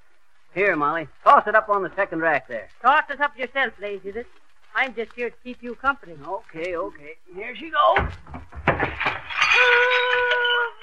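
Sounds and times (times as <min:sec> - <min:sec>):
speech: 0:00.6 - 0:08.8
big cut glass punch bowl breaking: 0:08.7 - 0:10.8.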